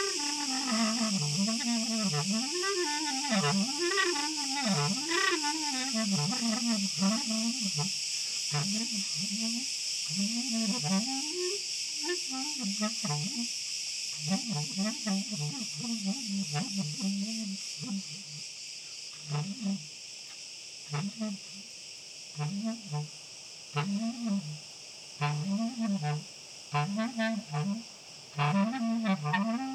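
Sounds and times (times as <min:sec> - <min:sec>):
crickets chirping: 0:00.0 - 0:29.7.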